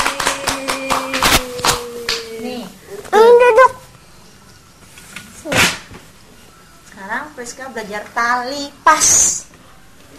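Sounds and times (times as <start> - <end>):
hands clapping for a child during a lesson: 0.0 - 2.4
speech: 7.4 - 9.4.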